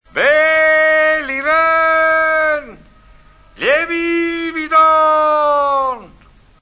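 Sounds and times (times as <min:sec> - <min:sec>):
fishmonger shouting: 0:00.1 - 0:02.8, 0:03.6 - 0:06.2.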